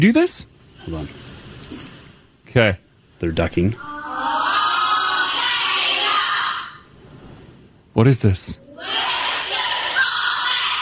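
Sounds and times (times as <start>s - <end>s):
speech: 0.0s - 1.3s, 2.5s - 4.0s, 8.0s - 8.6s
cub scouts chanting: 3.8s - 7.0s, 8.6s - 10.8s.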